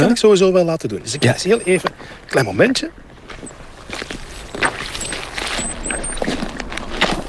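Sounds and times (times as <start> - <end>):
speech: 0.1 - 4.1
boots squelching on soft waterlogged bog peat: 3.0 - 7.2.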